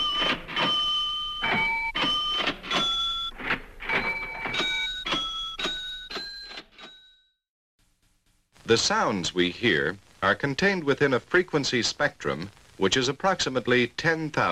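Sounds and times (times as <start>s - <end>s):
cash register mechanical clunks: 0.0s - 7.1s
cash register ringing bell tones: 0.0s - 7.4s
speech: 8.7s - 14.5s.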